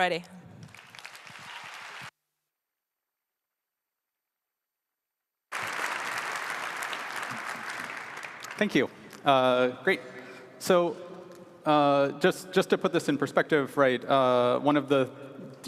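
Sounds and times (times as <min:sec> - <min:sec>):
speech: 0:00.0 - 0:00.4, 0:08.6 - 0:15.6
audience applause: 0:00.7 - 0:02.1, 0:05.5 - 0:09.1.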